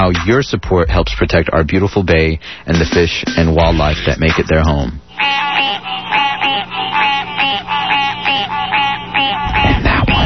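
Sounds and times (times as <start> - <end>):
speech: 0.0 - 6.7
gray tree frogs and chorus frogs trilling: 5.1 - 9.6.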